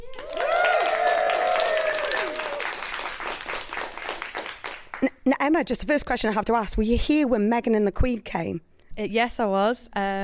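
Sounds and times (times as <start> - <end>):
audience applause welcoming the panellists at Chester's theatre, library and arts centre: 0.0 - 5.1
speech: 5.3 - 10.2.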